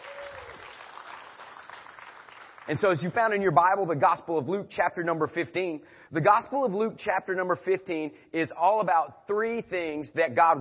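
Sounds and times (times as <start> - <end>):
audience hand clapping: 0.0 - 3.3
speech: 2.7 - 10.6.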